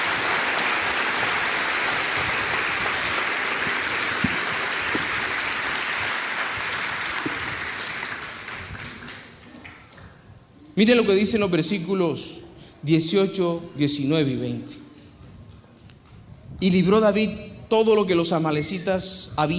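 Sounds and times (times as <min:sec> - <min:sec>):
audience applause: 0:00.0 - 0:09.8
speech: 0:10.8 - 0:14.8, 0:16.6 - 0:19.5.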